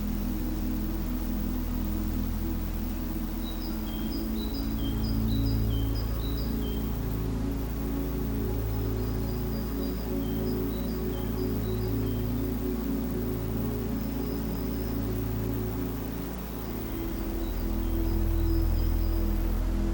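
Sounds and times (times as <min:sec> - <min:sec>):
gentle summer breeze: 0:00.0 - 0:19.9
soft soothing music: 0:00.0 - 0:19.9.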